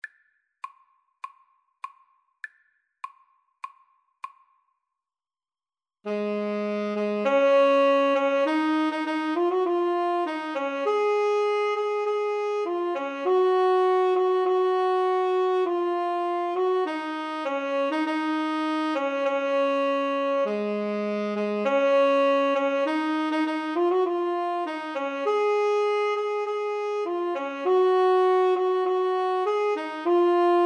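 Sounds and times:
tenor saxophone duet overture: 0:06.1 - 0:30.6.

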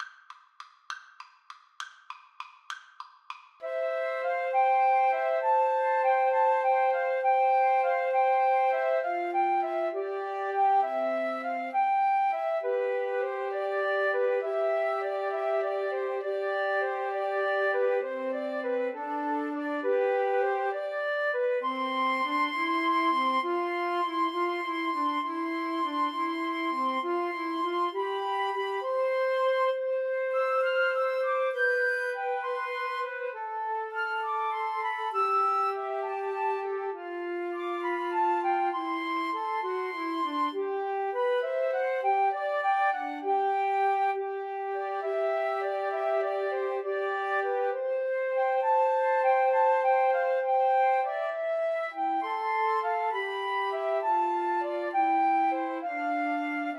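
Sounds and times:
flute trio playing: 0:03.6 - 0:56.7.

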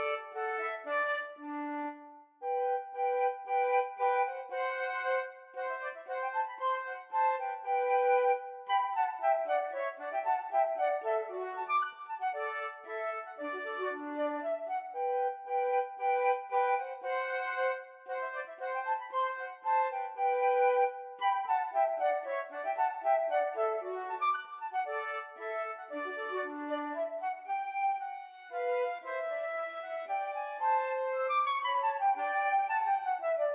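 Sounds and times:
flute duet: 0:00.0 - 0:33.5.

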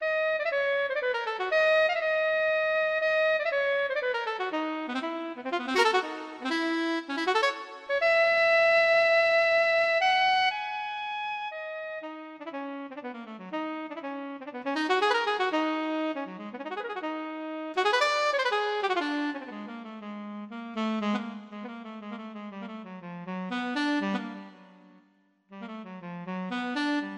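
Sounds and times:
saxophone solo: 0:00.0 - 0:27.1.

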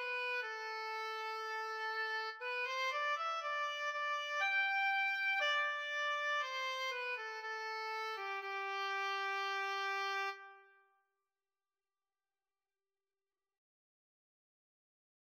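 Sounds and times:
oboe in an oboe and cello duet: 0:00.0 - 0:10.7.

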